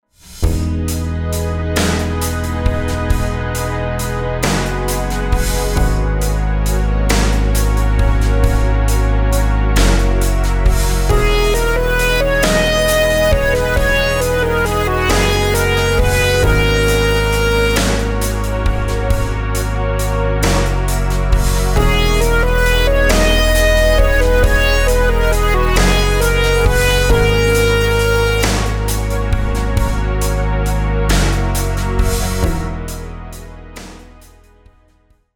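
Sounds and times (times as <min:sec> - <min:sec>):
compound meter rhythms in eighths with sixteenths: 0:00.5 - 0:33.3.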